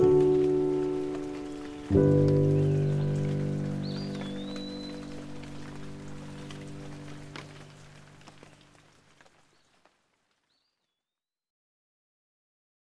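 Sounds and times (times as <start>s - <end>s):
piano music: 0.0s - 8.6s
rain: 0.0s - 10.8s
nature sounds: 0.0s - 11.1s.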